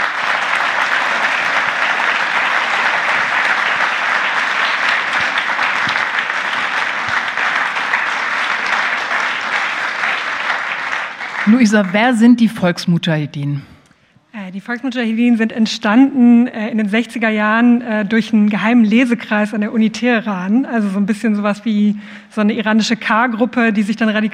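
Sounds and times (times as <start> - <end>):
sustained audience applause: 0.0 - 12.2
speech: 11.5 - 13.7, 14.5 - 24.3.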